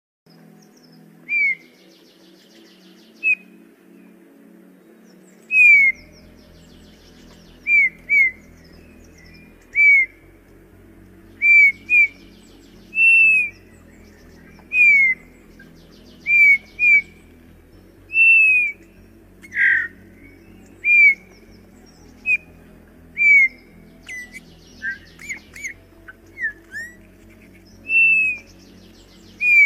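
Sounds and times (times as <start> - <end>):
Eurasian bullfinch soft descending piping whistles: 5.5 - 6.0, 6.8 - 10.2, 11.4 - 12.3, 12.9 - 15.3, 15.9 - 17.2, 18.1 - 18.8, 19.4 - 21.4, 23.2 - 29.6.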